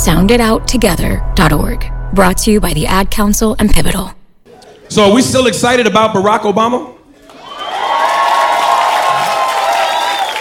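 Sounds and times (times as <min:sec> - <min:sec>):
speech: 0:00.0 - 0:04.2, 0:04.9 - 0:06.9
crowd cheering: 0:07.2 - 0:10.3.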